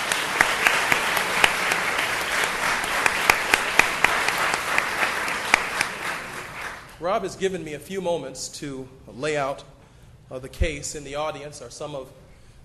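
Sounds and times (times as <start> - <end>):
audience applause: 0.0 - 7.0
speech: 7.0 - 12.2.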